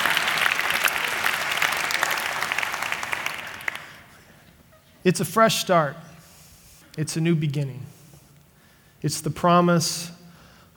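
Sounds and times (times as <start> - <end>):
audience applause welcoming back students from a semester abroad: 0.0 - 4.1
speech: 5.0 - 6.0, 7.0 - 8.0, 9.0 - 10.2.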